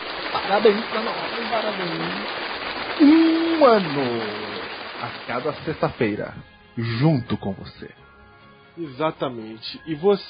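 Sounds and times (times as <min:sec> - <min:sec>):
applause: 0:00.0 - 0:06.4
speech: 0:00.4 - 0:08.0, 0:08.8 - 0:10.2.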